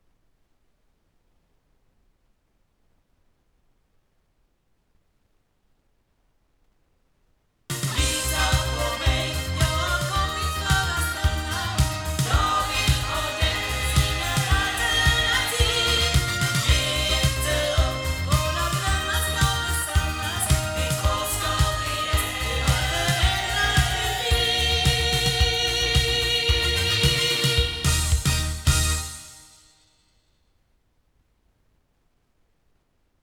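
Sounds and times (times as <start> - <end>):
loudspeakers: 7.7 - 29.1.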